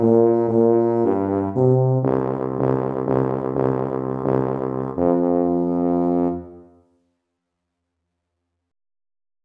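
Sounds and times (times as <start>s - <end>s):
trombone playing a courtly dance: 0.0s - 6.7s
tuba playing a courtly dance: 0.0s - 6.8s.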